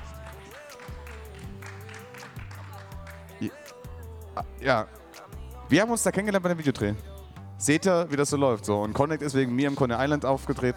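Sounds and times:
audience clapping: 0.0s - 3.8s
speech: 3.4s - 3.8s, 4.4s - 5.0s, 5.7s - 10.7s.

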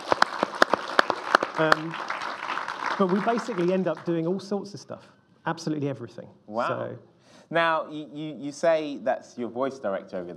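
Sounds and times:
scattered applause from small audience: 0.0s - 4.8s
speech: 1.6s - 2.1s, 3.0s - 10.3s.

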